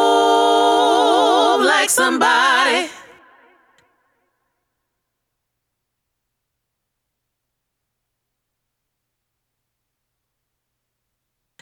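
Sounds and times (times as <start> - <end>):
a cappella singing: 0.0 - 3.8.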